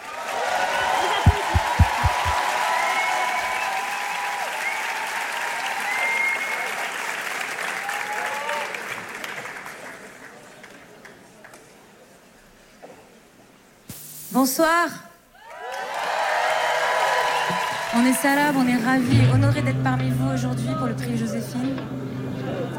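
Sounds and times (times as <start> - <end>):
audience cheering: 0.0 - 7.0, 15.4 - 18.7
audience applause welcoming a band at an awards event: 0.0 - 10.8, 15.4 - 18.8
whistles: 5.8 - 6.8
speech: 14.4 - 15.1, 18.0 - 22.6.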